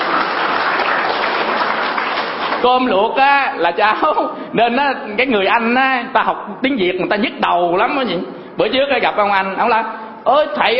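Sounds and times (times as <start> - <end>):
audience applause: 0.0 - 2.7
speech: 2.6 - 10.7.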